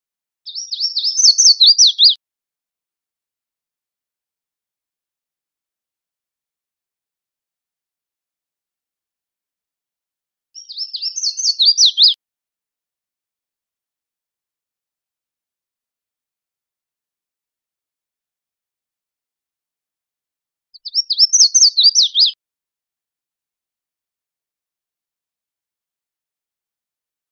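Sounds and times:
red-faced warbler singing: 0.5 - 2.2, 10.6 - 12.2, 20.8 - 22.4.

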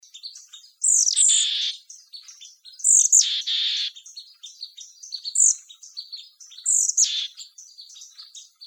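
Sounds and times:
bird giving harsh rasping mechanical calls with whistled note and buzzy bursts: 0.8 - 1.9, 2.8 - 4.1, 5.2 - 7.6.

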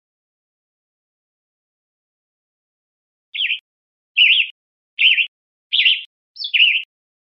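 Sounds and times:
warbled bird notes: 3.4 - 3.6, 4.2 - 6.9.

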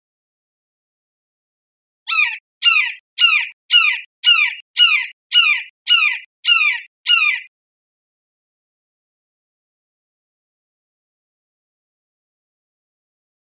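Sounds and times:
red-shouldered hawk calling kee-ah: 2.1 - 7.5.

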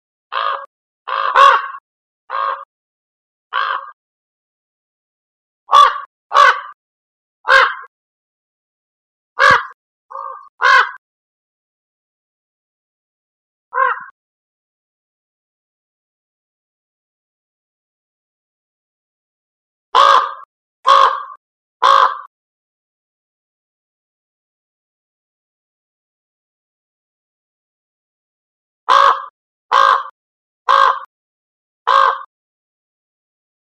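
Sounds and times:
common raven croaking: 0.3 - 2.7, 3.5 - 4.0, 9.4 - 11.0, 13.7 - 14.1, 20.0 - 22.3, 28.9 - 31.1, 31.9 - 32.3.

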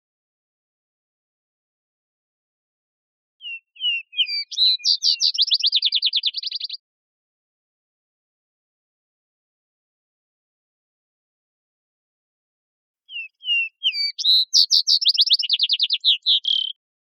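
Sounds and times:
vesper sparrow singing: 3.4 - 6.8, 13.1 - 16.8.

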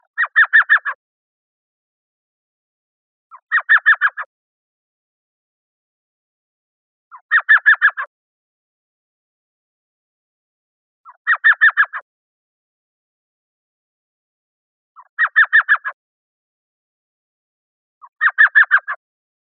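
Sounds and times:
elf owl yelping calls: 0.0 - 1.0, 3.3 - 4.3, 7.1 - 8.1, 11.1 - 12.0, 15.0 - 16.0, 18.0 - 19.0.

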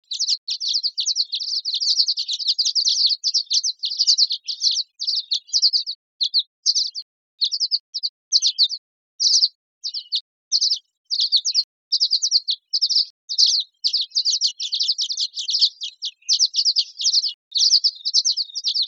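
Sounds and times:
violet-green swallow twittering: 0.0 - 18.8.

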